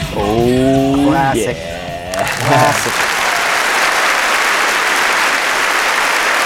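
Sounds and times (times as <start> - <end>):
laughter: 0.2 - 3.4
crowd applauding and cheering: 2.0 - 6.4.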